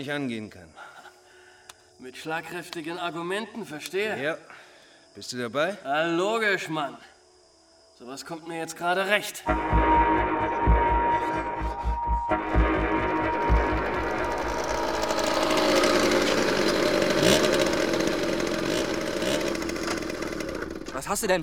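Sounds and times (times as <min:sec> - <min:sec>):
speech: 0:00.0 - 0:00.8, 0:02.0 - 0:07.1, 0:08.0 - 0:10.0, 0:21.1 - 0:21.4
moped engine running and revving: 0:09.5 - 0:21.1.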